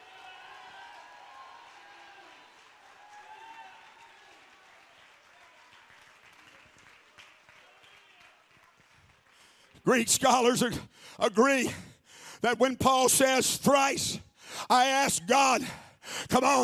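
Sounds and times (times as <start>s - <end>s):
crowd clapping: 0.0s - 10.1s
speech: 9.8s - 16.6s.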